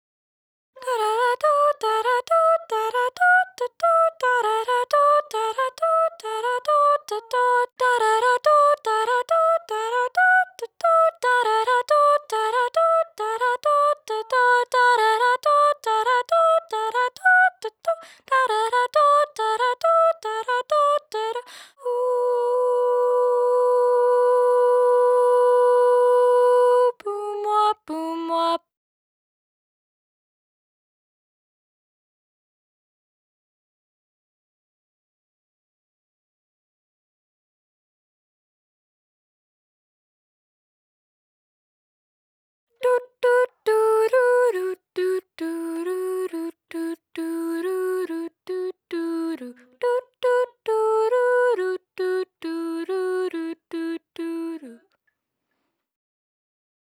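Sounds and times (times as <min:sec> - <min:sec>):
soprano singing: 0:00.8 - 0:28.7, 0:42.8 - 0:55.0.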